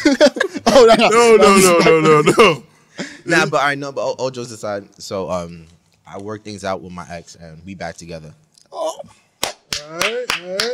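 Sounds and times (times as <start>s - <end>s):
speech: 0.0s - 9.2s, 9.8s - 10.7s
hand clapping: 9.4s - 10.7s.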